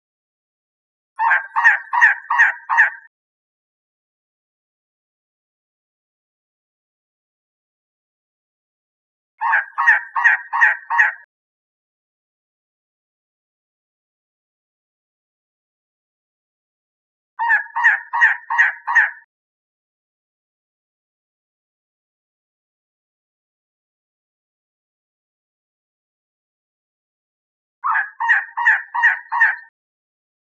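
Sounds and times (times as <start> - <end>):
elegant trogon croaking call: 1.2 - 3.1, 9.4 - 11.3, 17.4 - 19.3, 27.8 - 29.7.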